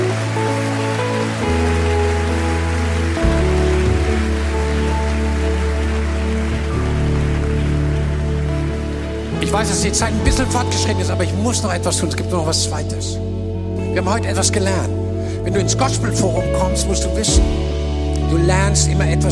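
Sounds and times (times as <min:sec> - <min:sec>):
audience applause: 0:00.0 - 0:11.8
sustained keyboard or organ chords: 0:00.0 - 0:19.2
speech: 0:09.6 - 0:13.4, 0:14.0 - 0:19.2.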